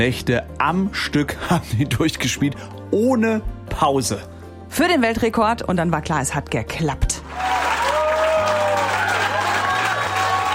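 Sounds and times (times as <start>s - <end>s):
speech: 0.0s - 7.5s
crowd cheering and applauding: 7.2s - 10.5s.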